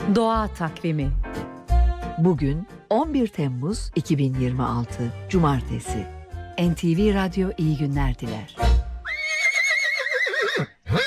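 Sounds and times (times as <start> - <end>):
speech: 0.1 - 1.4, 2.2 - 8.6
horse whinnying: 9.0 - 11.0.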